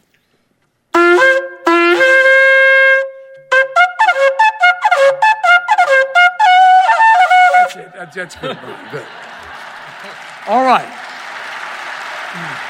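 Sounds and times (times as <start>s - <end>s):
kudu horn blown: 1.0s - 7.8s
laughter: 7.7s - 12.6s
speech: 8.1s - 9.2s, 10.0s - 11.0s, 12.4s - 12.6s.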